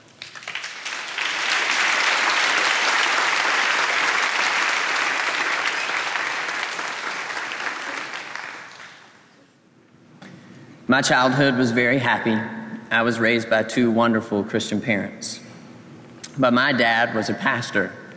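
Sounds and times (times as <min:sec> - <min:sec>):
audience applause welcoming a speaker to the stage: 0:00.0 - 0:09.2
speech: 0:10.9 - 0:15.4, 0:16.4 - 0:18.0.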